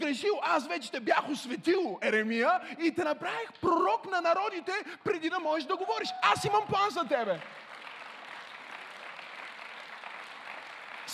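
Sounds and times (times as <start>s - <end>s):
speech: 0.1s - 7.7s
polite audience applause: 5.9s - 11.1s.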